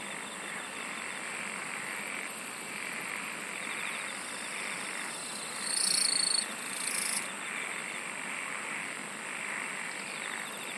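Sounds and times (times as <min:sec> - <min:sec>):
insect pulsed trill: 0:00.0 - 0:08.6, 0:09.4 - 0:10.7.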